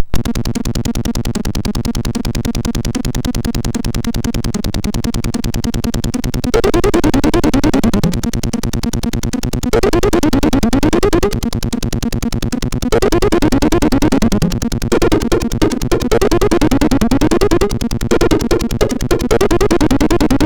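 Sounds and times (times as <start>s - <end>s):
MOS6581R4 SID chip music: 0.0s - 20.4s.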